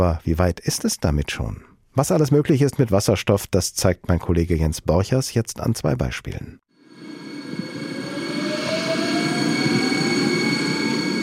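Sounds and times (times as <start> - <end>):
speech: 0.0 - 6.6
hydrogen-powered regional train passing on the Taunus lines: 6.8 - 11.2.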